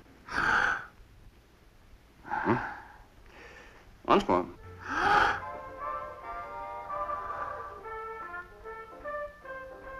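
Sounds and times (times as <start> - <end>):
deep breath: 0.3 - 1.0, 2.2 - 4.0, 4.8 - 5.6, 7.0 - 7.8
speech: 2.5 - 2.7, 4.1 - 4.6.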